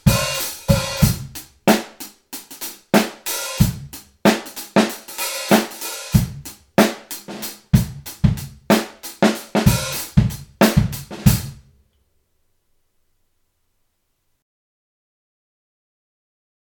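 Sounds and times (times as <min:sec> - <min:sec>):
hi-hat: 0:00.0 - 0:11.5.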